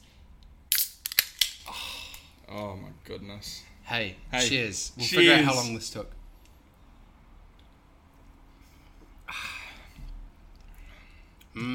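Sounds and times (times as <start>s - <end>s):
drink cans cracked open: 0.7s - 1.6s
speech: 2.5s - 6.2s.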